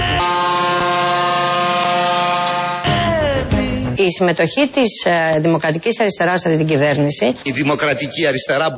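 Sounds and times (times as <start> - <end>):
tractor horns blaring at a protest: 0.1 - 3.3
speech: 4.0 - 8.7.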